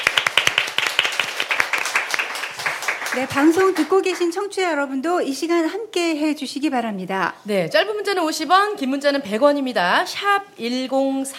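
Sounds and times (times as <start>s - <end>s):
small audience applauding after a live song: 0.0s - 4.4s
speech: 3.2s - 11.3s.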